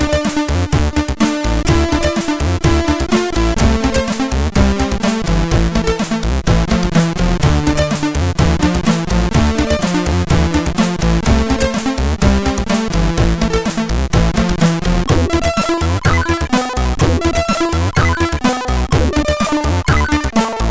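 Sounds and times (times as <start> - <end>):
beat bass on MOS6581R3 SID chip: 0.0 - 20.7.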